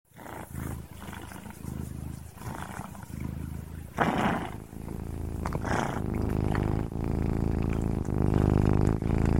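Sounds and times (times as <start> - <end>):
cat purring: 0.1 - 9.3.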